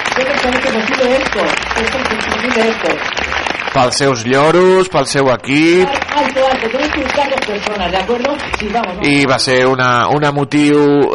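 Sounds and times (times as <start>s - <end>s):
audience applause: 0.0s - 4.7s, 5.5s - 9.4s
speech: 0.2s - 11.1s.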